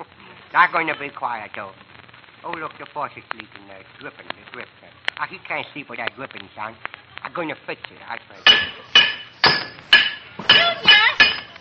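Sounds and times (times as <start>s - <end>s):
speech: 0.5s - 9.2s
banging on a metal pipe: 8.4s - 11.6s.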